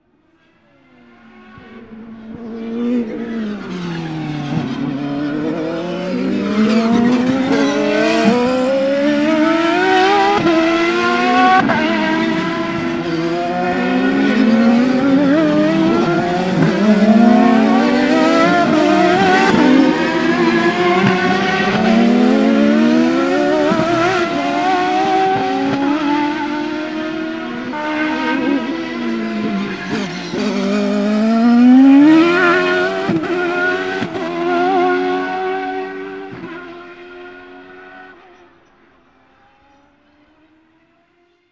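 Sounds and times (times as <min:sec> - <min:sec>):
cars: 0:00.0 - 0:41.4.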